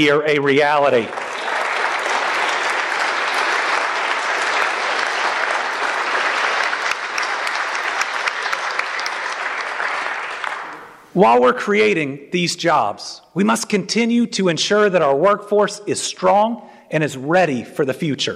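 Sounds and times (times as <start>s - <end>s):
speech: 0.0s - 1.3s, 11.2s - 18.3s
sustained audience applause: 0.6s - 11.0s.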